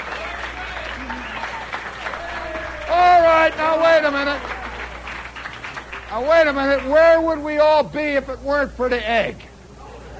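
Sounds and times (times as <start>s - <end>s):
audience clapping in a tribute to the egg: 0.0s - 7.4s
voices calling out: 0.0s - 7.5s
speech: 3.5s - 4.5s, 6.1s - 9.5s.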